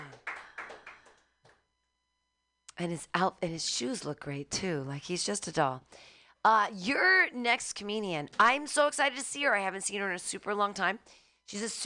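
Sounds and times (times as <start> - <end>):
audience clapping: 0.0 - 1.6
speech: 2.8 - 11.8.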